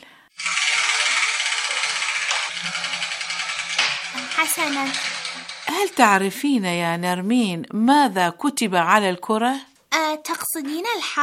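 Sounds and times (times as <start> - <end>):
spinning letter wheel rattling: 0.4 - 7.3
speech: 4.4 - 11.2.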